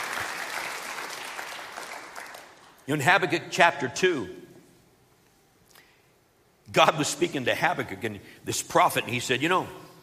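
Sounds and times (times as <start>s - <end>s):
audience clapping: 0.0s - 2.8s
speech: 2.9s - 4.4s, 6.7s - 9.8s.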